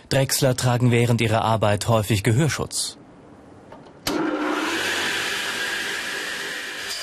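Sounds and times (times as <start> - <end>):
speech: 0.1 - 3.0
large saw cutting a wooden board: 4.1 - 7.0.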